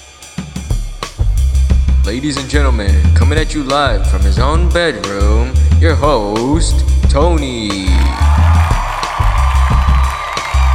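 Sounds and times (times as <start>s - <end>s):
deep thumping low notes: 1.2s - 10.1s
speech: 2.1s - 8.3s
crowd cheering sound effect: 7.5s - 10.7s
scattered applause: 7.8s - 10.7s.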